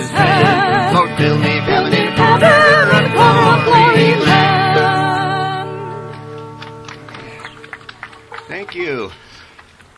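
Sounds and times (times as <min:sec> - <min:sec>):
people singing: 0:00.0 - 0:05.9
mandolin: 0:00.0 - 0:07.8
guitar: 0:00.0 - 0:09.9.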